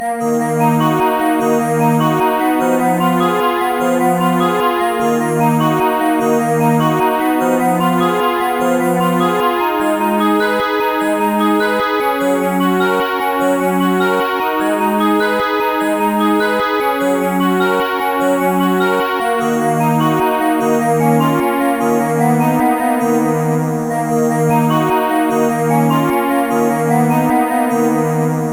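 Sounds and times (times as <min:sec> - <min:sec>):
piano: 0:00.0 - 0:28.5.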